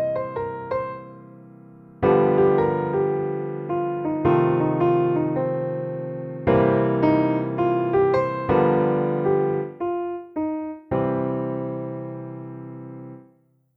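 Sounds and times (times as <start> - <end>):
solo blues piano: 0.0 - 13.3.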